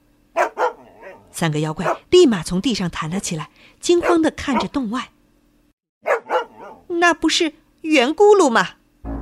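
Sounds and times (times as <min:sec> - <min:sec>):
dog barking: 0:00.4 - 0:02.1, 0:03.9 - 0:04.8, 0:06.0 - 0:06.9
speech: 0:01.4 - 0:05.1, 0:07.0 - 0:08.8.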